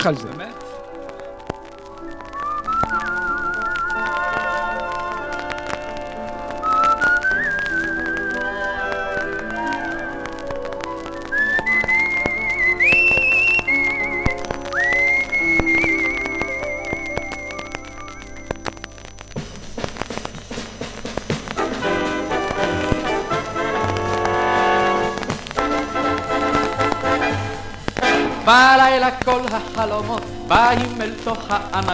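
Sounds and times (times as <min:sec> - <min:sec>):
speech: 0:00.0 - 0:00.6, 0:28.5 - 0:31.9
instrumental backing music: 0:00.0 - 0:31.9
person whistling a melody: 0:02.0 - 0:05.0, 0:06.6 - 0:10.3, 0:11.1 - 0:18.6.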